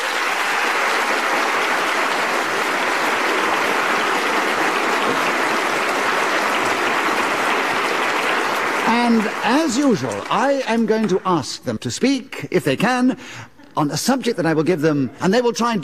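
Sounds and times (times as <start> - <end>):
audience applause on a word-game panel show: 0.0 - 11.2
speech: 9.4 - 15.8.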